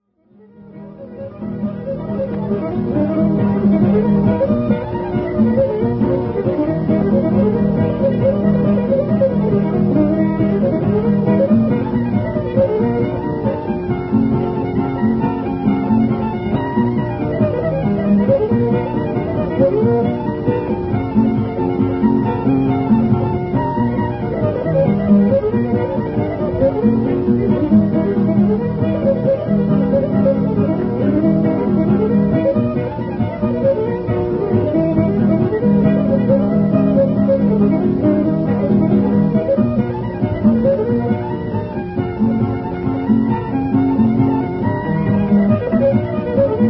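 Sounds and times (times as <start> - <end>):
hornpipe tune: 0.3 - 46.6.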